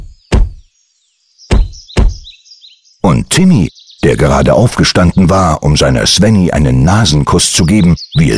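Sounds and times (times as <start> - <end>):
heavy stomping footsteps cracking undergrowth: 0.0 - 0.7, 1.5 - 2.3
birds chirping: 0.0 - 8.3
speech: 3.1 - 8.3.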